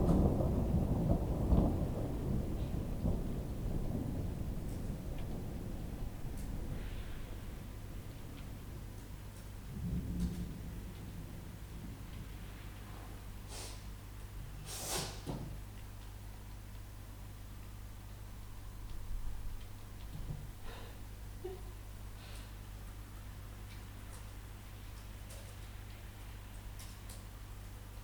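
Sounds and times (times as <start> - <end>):
thunder: 0.0 - 13.2
rain: 0.0 - 28.0.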